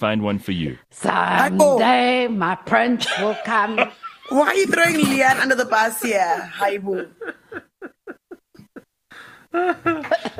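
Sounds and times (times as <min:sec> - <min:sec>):
speech: 0:00.0 - 0:07.6, 0:09.5 - 0:10.3
woman coughing: 0:04.8 - 0:05.6.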